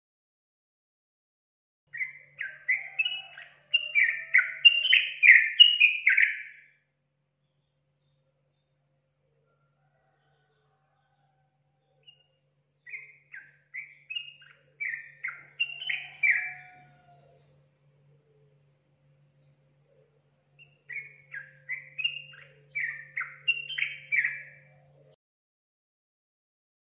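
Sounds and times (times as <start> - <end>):
Yellow-vented Bulbul song: 1.9 - 6.6, 11.9 - 25.2.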